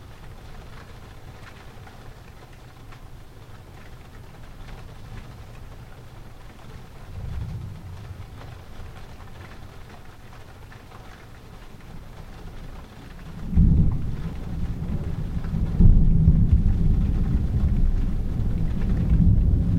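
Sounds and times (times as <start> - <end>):
thunder: 7.0 - 10.0, 13.4 - 19.7.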